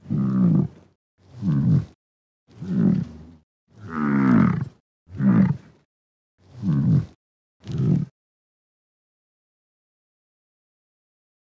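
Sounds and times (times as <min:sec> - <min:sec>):
European bison (wisent) grunting: 0:00.0 - 0:05.8, 0:06.5 - 0:08.1.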